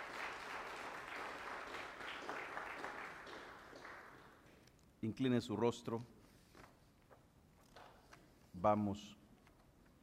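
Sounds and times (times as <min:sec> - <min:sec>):
audience applauding: 0:00.0 - 0:04.5
speech: 0:05.0 - 0:06.2, 0:08.6 - 0:09.2.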